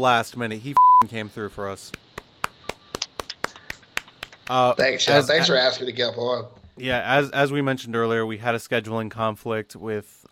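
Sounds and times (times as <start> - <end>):
speech: 0.0 - 2.0, 4.5 - 10.3
round of applause: 2.1 - 4.8.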